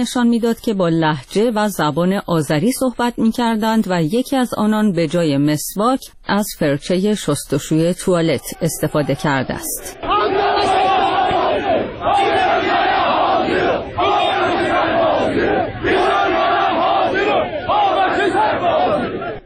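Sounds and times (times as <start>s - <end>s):
speech: 0.0s - 10.8s
crowd chanting at a protest gathering in Tabriz: 8.0s - 19.4s.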